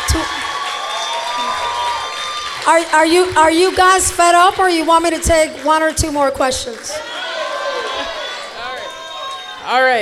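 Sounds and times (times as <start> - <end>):
audience round of applause: 0.0 - 9.6
speech: 2.6 - 7.2, 9.7 - 10.0.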